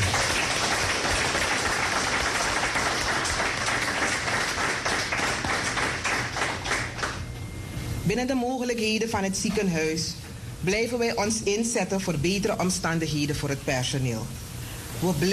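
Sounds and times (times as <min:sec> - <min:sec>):
audience applause: 0:00.0 - 0:07.2
speech: 0:08.1 - 0:14.4, 0:15.0 - 0:15.3.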